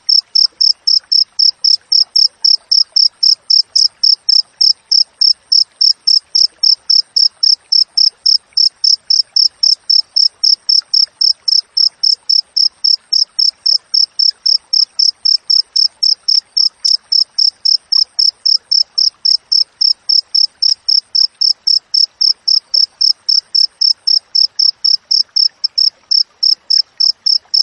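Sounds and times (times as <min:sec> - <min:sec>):
cricket chirping: 0:00.0 - 0:27.6.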